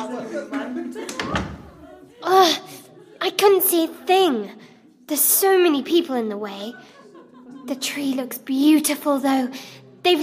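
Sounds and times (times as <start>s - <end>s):
laughter: 0.0s - 3.4s, 6.4s - 8.2s
excited children's voices: 0.0s - 10.2s
door opening: 1.1s - 1.8s
speech: 3.4s - 6.9s, 7.7s - 10.2s.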